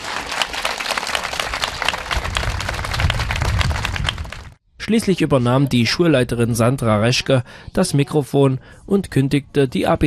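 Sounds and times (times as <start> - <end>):
audience applause: 0.0 - 4.6
speech: 4.9 - 10.0.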